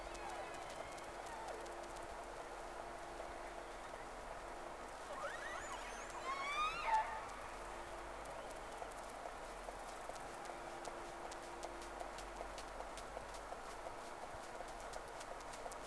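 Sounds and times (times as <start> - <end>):
faint clicks: 0.0 - 4.6, 5.6 - 15.8
steady low hum: 0.0 - 15.8
whale whistles: 5.1 - 7.3.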